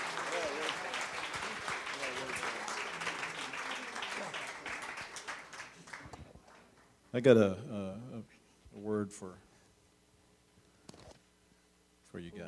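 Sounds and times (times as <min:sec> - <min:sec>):
church audience clapping: 0:00.0 - 0:06.9
speech: 0:07.1 - 0:09.5, 0:12.2 - 0:12.4.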